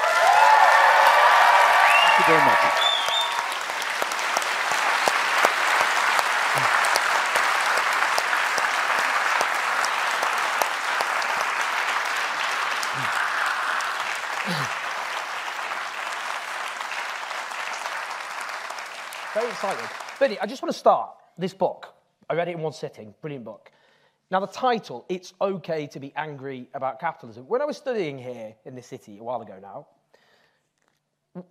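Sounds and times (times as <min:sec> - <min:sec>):
audience applause: 0:00.0 - 0:20.5
speech: 0:02.2 - 0:02.9, 0:19.6 - 0:23.7, 0:24.3 - 0:30.0.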